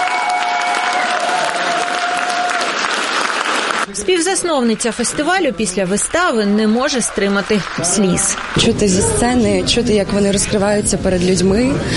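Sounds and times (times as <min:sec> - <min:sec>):
scattered audience cheers: 0:00.0 - 0:03.6
packed audience ovation applause: 0:00.0 - 0:05.4, 0:06.6 - 0:09.5
speech: 0:03.9 - 0:11.9.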